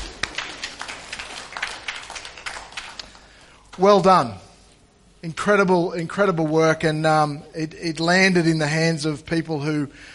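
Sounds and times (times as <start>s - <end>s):
audience clapping: 0.0s - 3.9s
speech: 3.8s - 4.4s, 5.2s - 10.1s.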